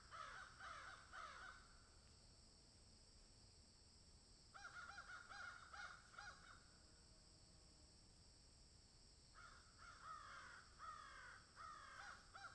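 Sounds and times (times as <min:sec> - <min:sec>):
several crows cawing in a field: 0:00.0 - 0:01.7, 0:04.6 - 0:06.6, 0:09.4 - 0:12.5.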